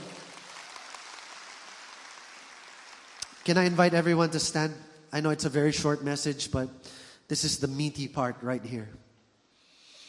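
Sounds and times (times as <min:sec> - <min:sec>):
audience clapping: 0:00.0 - 0:04.2
speech: 0:03.4 - 0:09.0.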